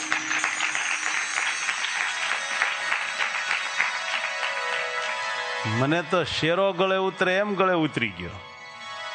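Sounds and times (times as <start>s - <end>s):
audience clapping: 0.0s - 5.8s
speech: 5.6s - 8.5s.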